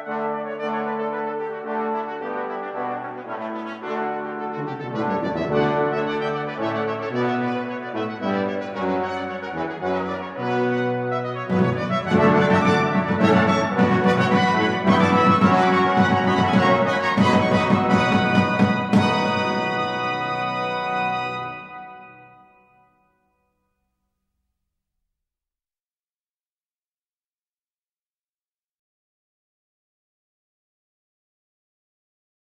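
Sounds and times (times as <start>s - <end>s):
suite music: 0.0s - 22.6s.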